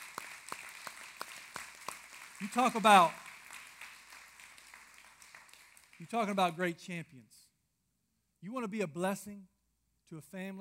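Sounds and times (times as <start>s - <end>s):
audience hand clapping: 0.0s - 6.6s
speech: 2.4s - 3.2s, 6.1s - 7.4s, 8.4s - 9.5s, 10.1s - 10.6s.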